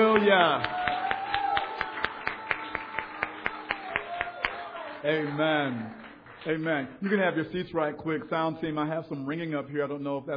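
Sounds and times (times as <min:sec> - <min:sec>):
audience clapping and cheering: 0:00.0 - 0:07.8
speech: 0:00.2 - 0:00.8, 0:05.0 - 0:10.3.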